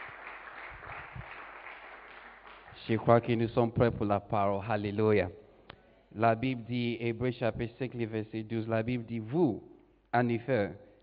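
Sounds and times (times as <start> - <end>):
church congregation applause after a song: 0.0 - 3.4
speech: 2.8 - 5.4, 6.1 - 10.8.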